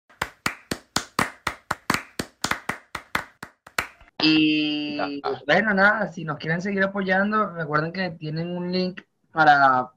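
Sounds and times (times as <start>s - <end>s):
applause, hand clapping: 0.1s - 4.1s
speech: 4.2s - 9.9s.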